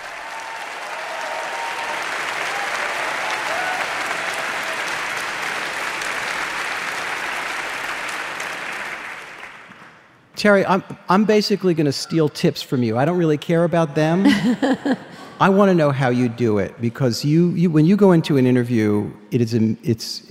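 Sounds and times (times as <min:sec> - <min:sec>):
crowd applauding welcoming a guest: 0:00.0 - 0:10.2
speech: 0:10.4 - 0:20.2
laughter: 0:13.6 - 0:15.7.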